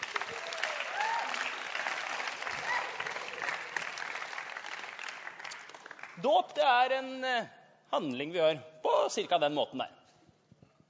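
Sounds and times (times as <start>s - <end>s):
audience clapping: 0.0s - 6.7s
speech: 6.2s - 10.0s.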